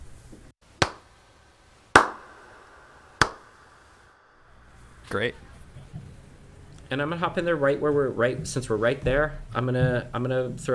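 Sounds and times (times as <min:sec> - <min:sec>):
hand claps: 0:00.8 - 0:01.0, 0:02.0 - 0:02.4, 0:03.2 - 0:03.5
speech: 0:05.1 - 0:05.5, 0:06.9 - 0:10.7.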